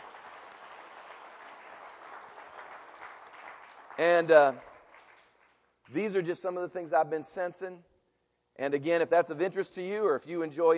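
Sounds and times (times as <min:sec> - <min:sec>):
audience hand clapping: 0:00.0 - 0:06.0
speech: 0:04.0 - 0:04.7, 0:05.9 - 0:07.9, 0:08.6 - 0:10.7.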